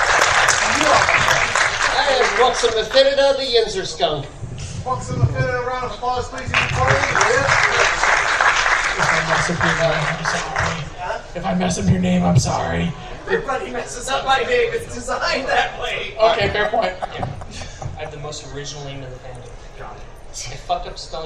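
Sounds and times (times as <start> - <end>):
audience applause: 0.0 - 3.8, 6.4 - 11.1
speech: 2.4 - 8.1, 9.0 - 17.3, 18.0 - 19.5, 20.4 - 21.2
laughter: 6.5 - 18.5.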